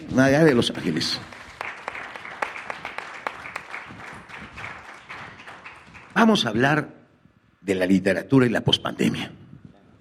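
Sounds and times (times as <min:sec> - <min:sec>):
speech: 0:00.2 - 0:01.3, 0:06.2 - 0:07.0, 0:07.6 - 0:09.4
audience applauding: 0:00.8 - 0:06.5.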